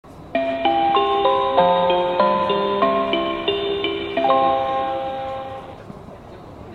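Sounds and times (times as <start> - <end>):
chime: 0.4 - 5.8.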